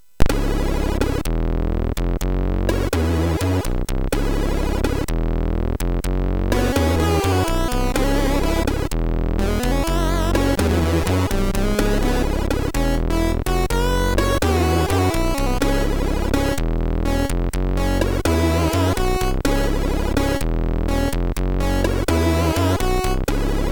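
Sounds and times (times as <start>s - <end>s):
blues on MOS6581 sound chip: 0.2s - 23.6s.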